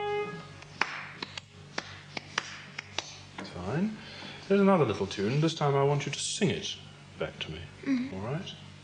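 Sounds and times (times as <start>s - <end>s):
hands clapping a rhythm: 0.6s - 3.3s
speech: 4.6s - 8.6s.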